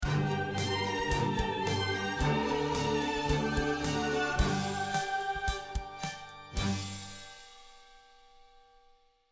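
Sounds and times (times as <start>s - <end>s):
dramatic opera ending: 0.0s - 6.9s.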